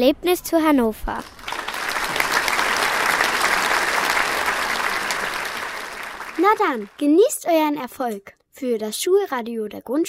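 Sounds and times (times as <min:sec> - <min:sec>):
speech: 0:00.0 - 0:01.4, 0:06.4 - 0:10.0
applause: 0:01.2 - 0:07.2.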